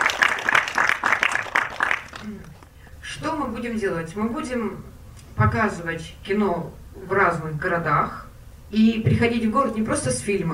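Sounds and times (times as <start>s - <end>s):
audience applause: 0.0s - 2.6s
speech: 2.3s - 10.5s.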